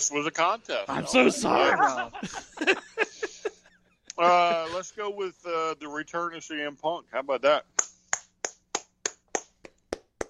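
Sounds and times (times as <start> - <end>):
speech: 0.0 - 3.2, 4.2 - 7.9
laughter: 0.9 - 6.0
hand claps: 7.8 - 10.2.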